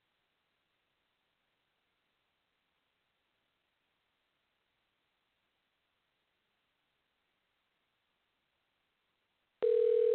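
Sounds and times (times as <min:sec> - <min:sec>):
telephone dial tone: 0:09.6 - 0:10.1.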